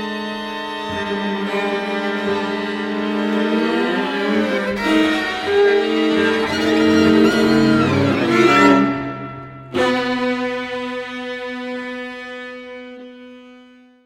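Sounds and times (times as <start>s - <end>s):
quartet playing: 1.8s - 11.2s.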